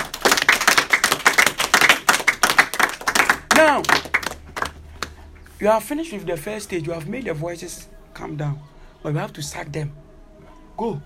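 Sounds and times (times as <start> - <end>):
audience clapping: 0.0 - 5.2
speech: 3.6 - 4.0, 5.6 - 10.0, 10.8 - 11.0.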